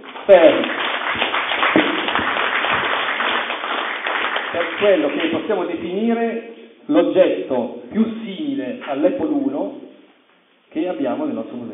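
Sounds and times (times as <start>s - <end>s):
applause: 0.0s - 5.5s
speech: 0.3s - 1.3s, 4.8s - 9.9s, 10.8s - 11.7s.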